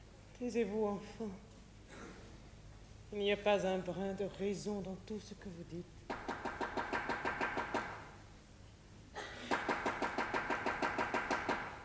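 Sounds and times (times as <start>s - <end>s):
speech: 0.4s - 1.5s, 3.1s - 6.1s
rapid knocking on a door in a 1957 staging of Le Mariage de Figaro: 6.1s - 8.0s, 9.5s - 11.8s.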